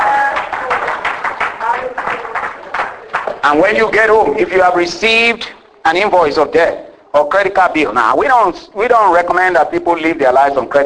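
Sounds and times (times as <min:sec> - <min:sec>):
audience clapping: 0:00.0 - 0:04.2
speech: 0:03.4 - 0:10.8.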